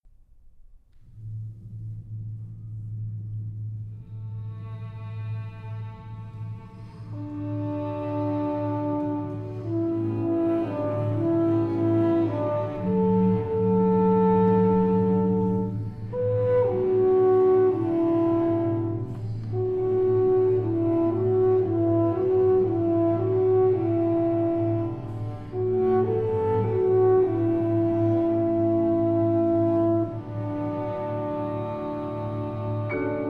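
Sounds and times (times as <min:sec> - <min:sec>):
timpani: 0:00.4 - 0:33.2.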